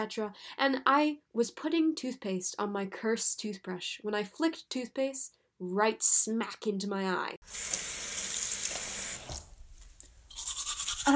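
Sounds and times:
speech: 0:00.0 - 0:08.0
water splashing from a running tap: 0:07.4 - 0:09.7.

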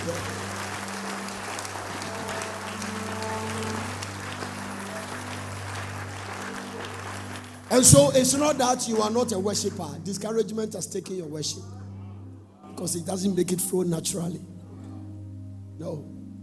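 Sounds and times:
audience clapping: 0:00.0 - 0:10.3
speech: 0:07.7 - 0:11.8, 0:12.8 - 0:14.5, 0:15.8 - 0:16.1.

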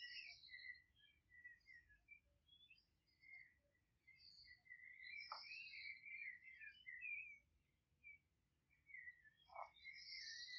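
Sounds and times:
birds singing in a Polish countryside garden: 0:00.0 - 0:10.5.

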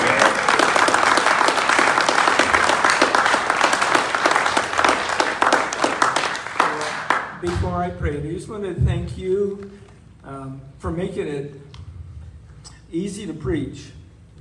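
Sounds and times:
audience applauding worship team: 0:00.0 - 0:07.6
speech: 0:07.4 - 0:11.6, 0:12.9 - 0:14.0.

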